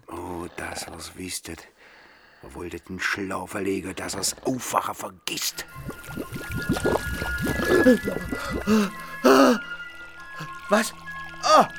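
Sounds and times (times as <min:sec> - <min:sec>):
speech: 0:00.5 - 0:09.6, 0:10.4 - 0:11.7
water splashing in a German radio drama: 0:05.5 - 0:11.7
man gasping and groaning: 0:07.6 - 0:09.7.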